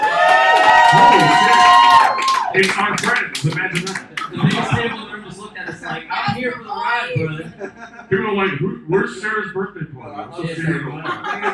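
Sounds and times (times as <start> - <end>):
live audience cheering: 0.0 - 4.8
laughter: 0.8 - 1.9, 2.6 - 6.3, 7.3 - 8.4, 10.7 - 11.5
speech: 0.9 - 1.7, 2.6 - 11.5.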